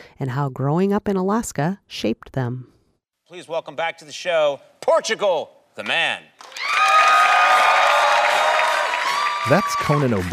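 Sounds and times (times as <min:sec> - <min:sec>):
speech: 0:00.2 - 0:02.7, 0:03.3 - 0:06.8, 0:09.4 - 0:10.3
studio audience cheering and applauding: 0:06.4 - 0:10.3.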